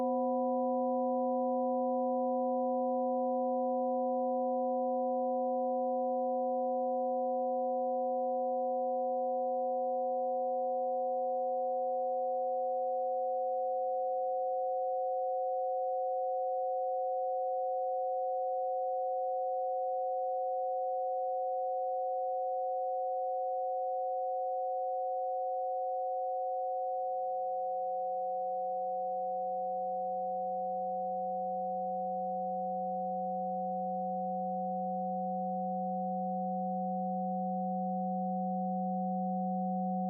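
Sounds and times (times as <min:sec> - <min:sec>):
sine wave quartet: 0:00.0 - 0:40.0.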